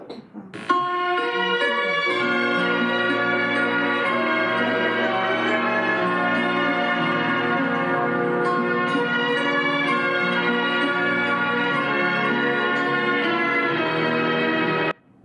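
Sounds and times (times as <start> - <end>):
film theme music: 0.8 - 15.0.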